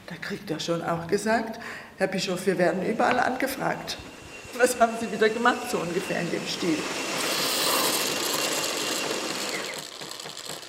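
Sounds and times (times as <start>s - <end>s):
speech: 0.3s - 7.0s
coffee machine whirring and hissing: 3.4s - 10.6s.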